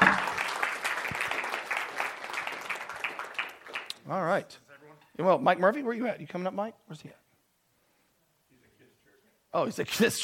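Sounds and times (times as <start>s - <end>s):
audience applause: 0.0s - 3.9s
speech: 4.1s - 7.2s, 9.5s - 10.2s.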